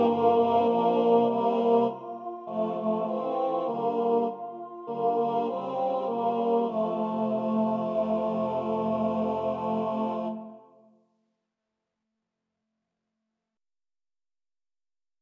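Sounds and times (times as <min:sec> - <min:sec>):
tenors and basses singing: 0:00.0 - 0:10.6.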